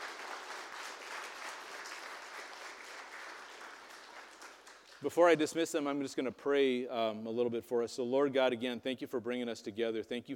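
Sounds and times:
audience applause: 0.0s - 5.5s
speech: 5.0s - 10.3s.

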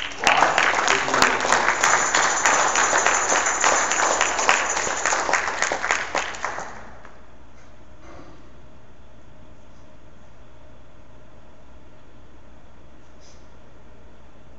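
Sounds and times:
audience applauding to welcome a speaker: 0.0s - 7.2s.

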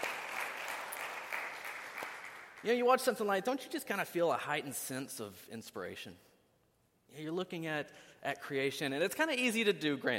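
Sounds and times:
audience applause: 0.0s - 2.6s
speech: 2.6s - 6.3s, 7.1s - 10.1s.

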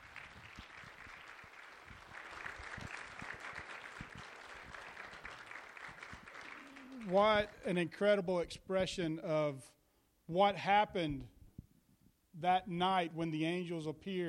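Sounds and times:
applause: 0.0s - 7.7s
speech: 7.1s - 11.3s, 12.4s - 14.2s.

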